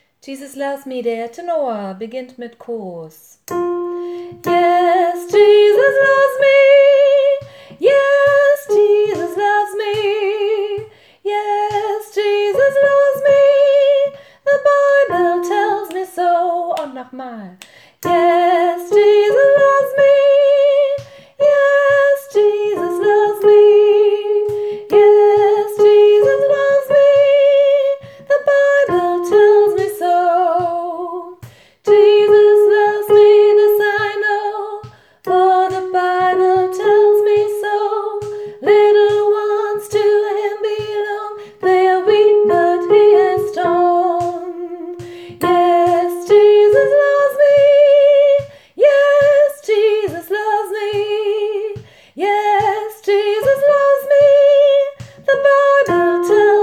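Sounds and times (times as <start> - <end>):
tenor singing: 3.5 - 56.6.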